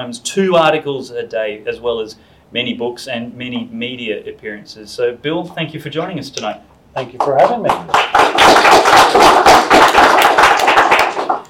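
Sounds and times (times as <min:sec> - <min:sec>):
speech: 0:00.0 - 0:09.3
audience applause: 0:07.2 - 0:11.4.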